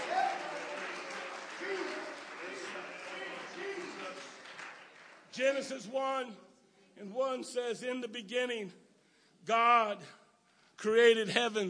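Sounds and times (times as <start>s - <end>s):
church audience clapping hands: 0.0s - 5.7s
speech: 5.4s - 8.8s, 9.4s - 10.2s, 10.8s - 11.6s.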